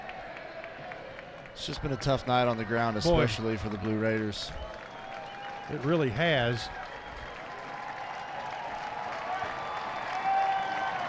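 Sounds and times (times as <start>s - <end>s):
stadium crowd cheering and applauding: 0.0s - 11.0s
speech: 1.6s - 4.8s, 5.7s - 6.8s.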